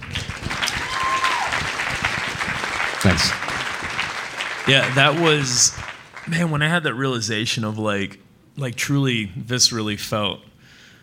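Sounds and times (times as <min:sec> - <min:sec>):
audience clapping: 0:00.0 - 0:07.0
speech: 0:03.0 - 0:03.4, 0:04.7 - 0:10.5.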